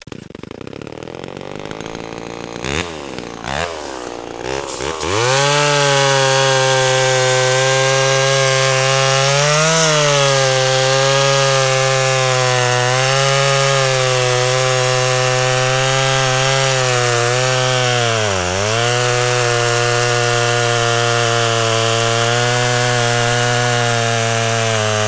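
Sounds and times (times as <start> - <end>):
chainsaw: 0.0 - 25.0.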